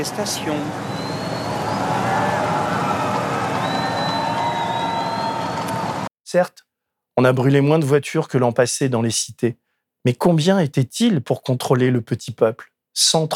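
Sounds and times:
speech: 0.0s - 1.0s, 6.3s - 13.3s
crowd applause: 0.0s - 6.1s.

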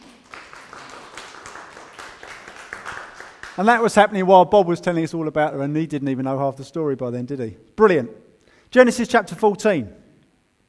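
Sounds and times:
applause: 0.0s - 4.0s
speech: 3.6s - 10.0s.

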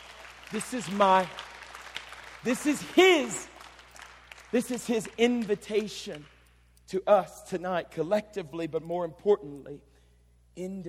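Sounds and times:
audience clapping: 0.0s - 6.4s
speech: 0.5s - 1.5s, 2.4s - 3.5s, 4.5s - 6.3s, 6.9s - 9.9s, 10.6s - 10.8s.

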